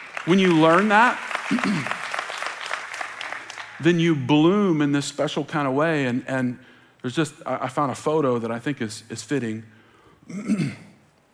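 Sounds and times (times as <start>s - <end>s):
crowd clapping: 0.0s - 4.3s
speech: 0.2s - 2.0s, 3.8s - 10.8s.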